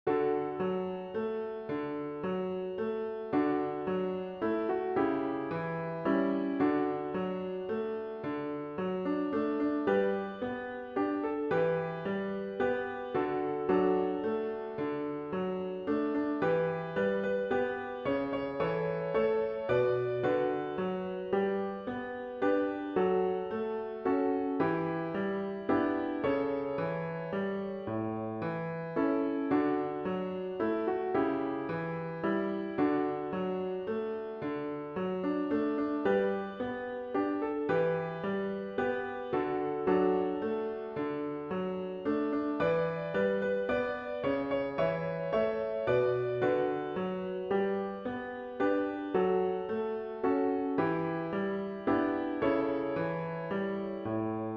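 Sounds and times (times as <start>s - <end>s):
piano: 0.0s - 54.5s.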